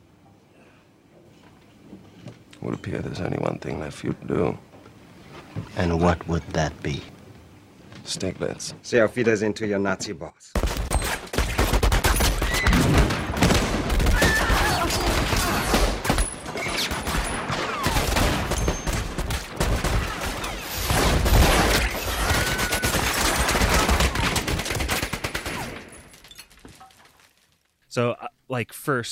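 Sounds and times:
speech: 0:02.6 - 0:04.7, 0:05.6 - 0:07.2, 0:08.1 - 0:10.6, 0:28.6 - 0:29.0
gunfire in a shootout scene from the film Inglourious Basterds: 0:10.6 - 0:25.8.

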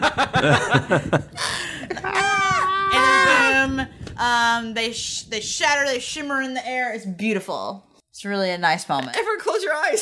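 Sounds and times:
laughter: 0:00.0 - 0:03.7
speech: 0:00.1 - 0:01.5, 0:04.7 - 0:10.0
voice screaming imitating swords shrieking as they die: 0:02.1 - 0:03.8.

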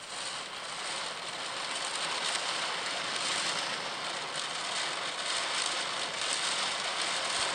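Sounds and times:
heavy rain pounding on a roof: 0:00.1 - 0:07.5.

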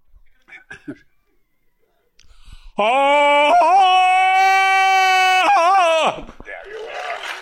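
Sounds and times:
speech: 0:00.8 - 0:01.1, 0:02.8 - 0:04.0
soft breaths: 0:01.7 - 0:02.8
man imitating a jungle-man yodel yell: 0:02.8 - 0:06.3.

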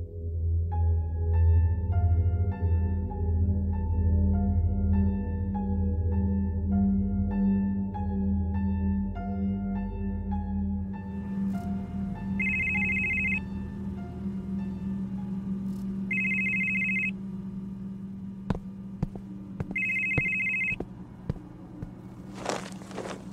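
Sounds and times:
low steady hum: 0:00.7 - 0:23.3
telephone ringing with electronic trilling: 0:12.4 - 0:13.4, 0:16.1 - 0:17.2, 0:19.7 - 0:20.8.

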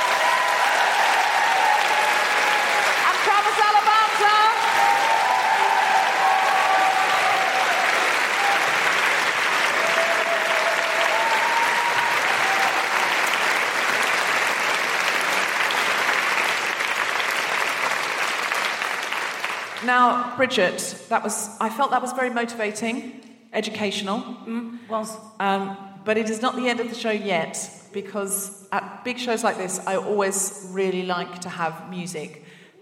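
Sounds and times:
big round of applause: 0:00.0 - 0:19.9
speech: 0:19.9 - 0:32.7.

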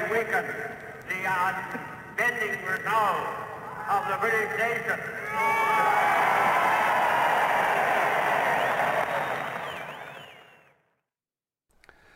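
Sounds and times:
speech: 0:00.2 - 0:06.6
large crowd cheering at a speech: 0:05.3 - 0:10.8
high whistles: 0:08.6 - 0:10.8.

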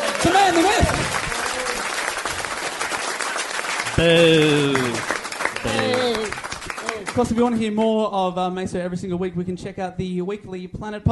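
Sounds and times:
audience round of applause: 0:00.0 - 0:07.6
speech: 0:04.0 - 0:05.9, 0:07.2 - 0:11.1.

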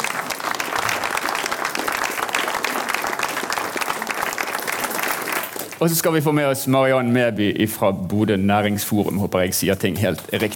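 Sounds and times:
audience clapping: 0:00.0 - 0:06.2
speech: 0:05.8 - 0:10.5.

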